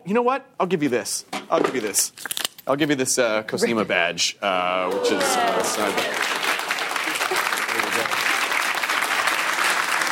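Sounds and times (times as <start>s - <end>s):
speech: 0.0s - 6.4s
crowd voices: 4.7s - 6.3s
live audience applause: 4.9s - 10.1s.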